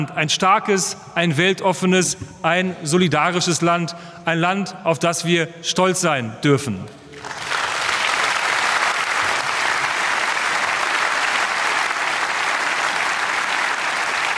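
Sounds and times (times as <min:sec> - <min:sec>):
speech: 0:00.0 - 0:07.4
applause: 0:07.1 - 0:14.3.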